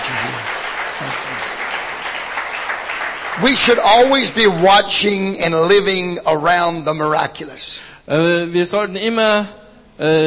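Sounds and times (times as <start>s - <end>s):
audience applause: 0.0s - 5.2s
speech: 3.4s - 10.2s.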